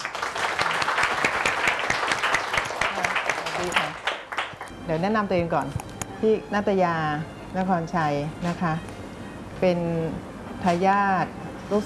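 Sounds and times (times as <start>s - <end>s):
audience applause: 0.0s - 4.7s
speech: 4.9s - 8.9s, 9.6s - 11.8s.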